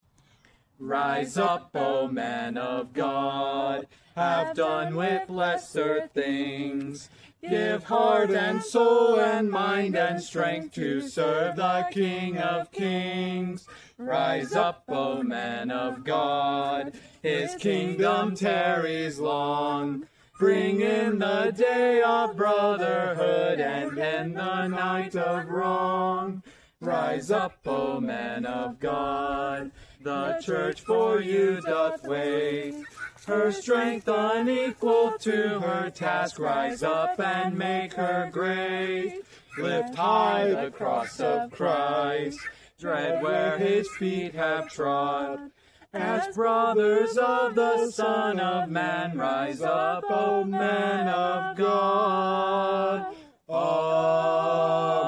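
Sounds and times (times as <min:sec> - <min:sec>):
people singing: 0:00.8 - 0:55.0.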